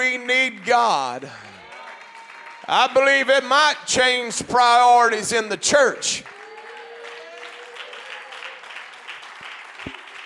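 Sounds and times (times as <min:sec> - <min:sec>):
speech: 0:00.0 - 0:01.6, 0:02.7 - 0:06.4
audience applause: 0:00.0 - 0:03.3, 0:06.2 - 0:10.2.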